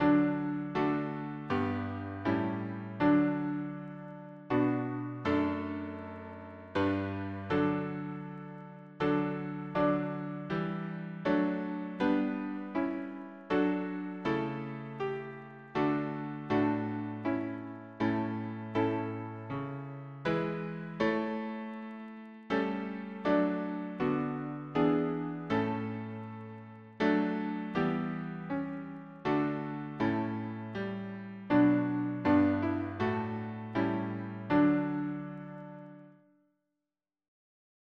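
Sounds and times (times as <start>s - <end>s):
piano harmony: 0.0s - 36.2s.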